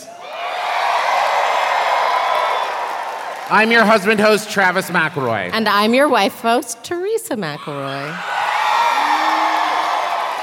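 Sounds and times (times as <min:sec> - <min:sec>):
audience applause: 0:00.0 - 0:04.8, 0:08.2 - 0:10.4
audience cheers and whoops: 0:00.1 - 0:03.5, 0:07.6 - 0:10.4
speech: 0:03.5 - 0:08.3.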